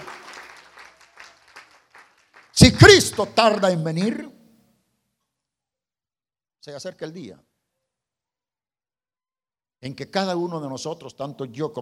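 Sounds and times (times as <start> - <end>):
congregation applause during a church service: 0.0 - 3.3
speech: 2.6 - 4.4, 6.6 - 7.5, 9.8 - 11.8.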